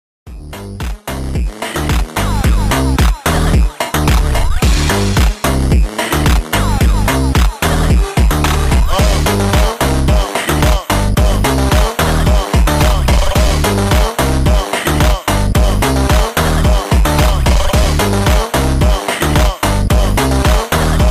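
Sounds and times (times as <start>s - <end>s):
funk loop: 0.3s - 21.1s.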